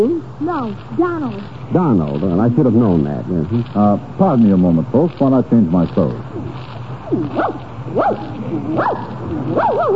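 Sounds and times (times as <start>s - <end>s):
speech: 0.0s - 6.3s, 7.1s - 9.9s
small dog barking: 7.1s - 9.9s.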